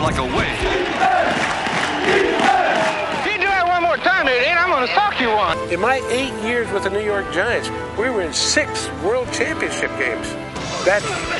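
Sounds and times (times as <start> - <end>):
stadium crowd cheering at football game at the Polo Grounds in New York: 0.0 - 5.4
speech: 5.6 - 11.3.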